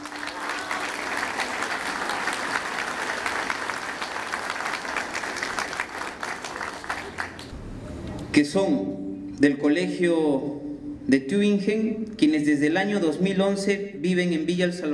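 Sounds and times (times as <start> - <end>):
audience applause: 0.0 - 7.5
speech: 8.4 - 10.5, 11.1 - 14.9.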